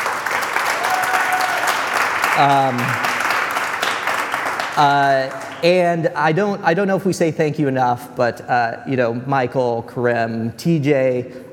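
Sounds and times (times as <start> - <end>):
audience applause: 0.0 - 5.7
speech: 2.4 - 3.1, 4.8 - 11.5.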